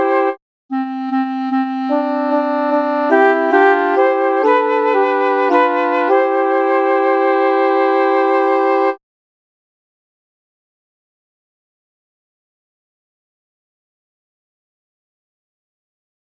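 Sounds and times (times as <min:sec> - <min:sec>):
piano playing: 0:01.1 - 0:09.0.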